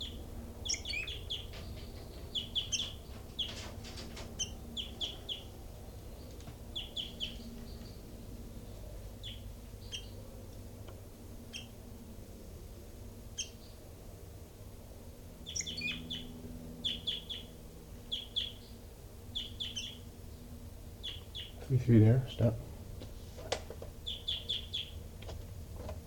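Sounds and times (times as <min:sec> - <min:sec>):
captive birds chirping: 0:00.0 - 0:11.9, 0:13.2 - 0:13.8, 0:15.4 - 0:22.6, 0:23.9 - 0:25.2
steady low hum: 0:00.0 - 0:26.0
speech: 0:21.7 - 0:22.7.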